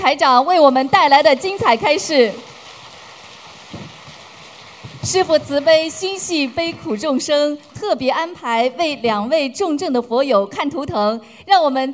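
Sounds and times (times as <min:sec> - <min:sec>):
speech: 0:00.0 - 0:02.5, 0:05.1 - 0:11.9
warm audience applause: 0:00.7 - 0:07.8.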